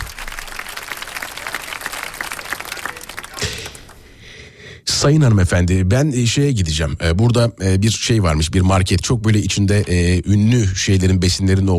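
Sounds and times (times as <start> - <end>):
group clapping: 0.0 - 4.2
speech: 5.0 - 11.7.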